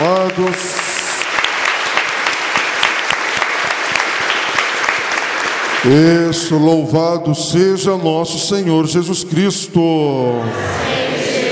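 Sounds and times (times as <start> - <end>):
audience applauding loudly: 0.0 - 6.4
speech: 0.4 - 0.8, 5.8 - 11.0.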